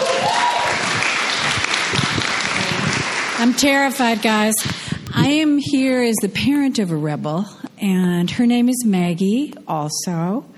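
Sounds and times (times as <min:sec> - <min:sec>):
crowd applauding: 0:00.0 - 0:04.2
speech: 0:03.4 - 0:10.5.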